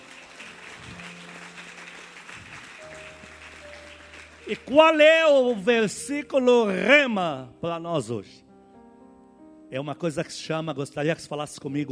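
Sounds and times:
audience applause: 0.0s - 5.0s
speech: 4.5s - 8.4s, 9.7s - 11.9s.

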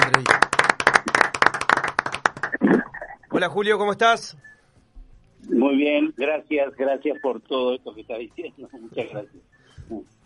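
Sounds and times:
small group hand clapping: 0.0s - 2.6s
speech: 3.4s - 4.6s, 5.4s - 10.2s
laughter: 8.7s - 9.4s.

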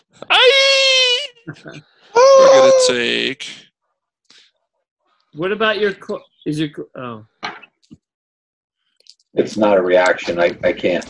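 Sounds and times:
Wilhelm scream sound effect: 0.3s - 1.5s, 2.2s - 3.1s
speech: 1.5s - 3.7s, 5.3s - 7.3s, 9.3s - 11.0s.

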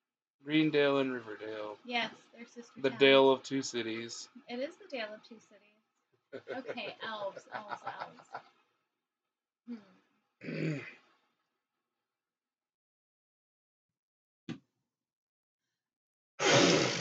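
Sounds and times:
speech: 0.5s - 5.7s, 6.3s - 8.6s, 9.7s - 11.0s
laughter: 6.4s - 8.4s
sneeze: 16.4s - 16.9s.

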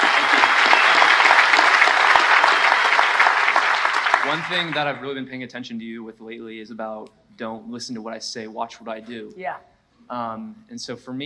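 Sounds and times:
crowd applauding: 0.0s - 5.2s
speech: 4.3s - 11.2s.

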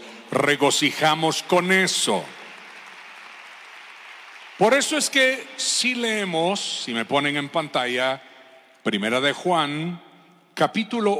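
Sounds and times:
speech: 0.3s - 2.4s, 4.6s - 10.0s, 10.6s - 11.1s
audience applause: 1.5s - 5.6s.

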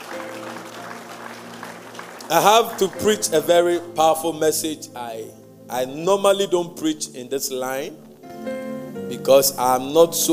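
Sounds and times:
audience clapping: 0.0s - 3.6s
speech: 2.3s - 10.3s.

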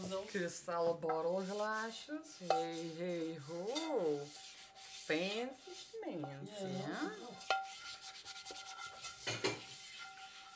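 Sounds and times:
speech: 0.1s - 4.5s, 5.1s - 7.8s
pan being handled: 2.4s - 4.5s, 5.7s - 10.5s.

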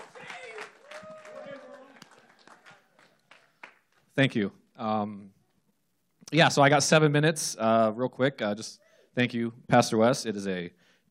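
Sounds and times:
crowd cheering and shouting: 0.0s - 2.3s
crowd clapping: 0.0s - 4.2s
speech: 4.2s - 5.4s, 6.3s - 11.0s.

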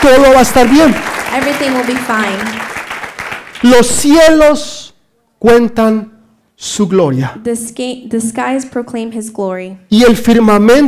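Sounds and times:
speech: 0.0s - 2.7s, 3.6s - 4.8s, 5.4s - 10.8s
audience applause: 0.0s - 3.7s.

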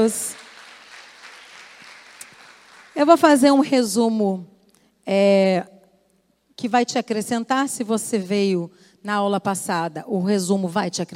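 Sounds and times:
speech: 0.0s - 0.4s, 3.0s - 5.7s, 6.6s - 11.1s
audience applause: 0.3s - 3.0s.

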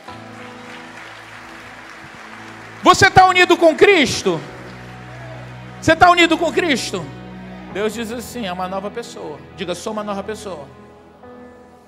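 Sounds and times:
church applause: 0.0s - 5.8s
speech: 2.8s - 4.5s, 5.8s - 10.8s.

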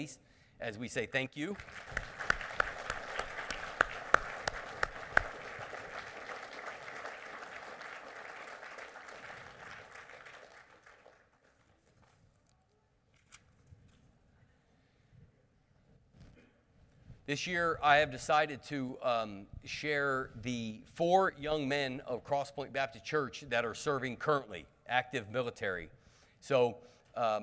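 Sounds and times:
speech: 0.0s - 2.1s, 17.3s - 27.4s
audience applauding: 1.6s - 11.7s.

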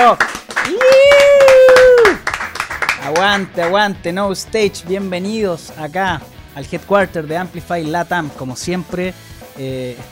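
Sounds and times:
applause: 0.0s - 3.8s
speech: 0.1s - 0.9s, 3.1s - 10.1s.

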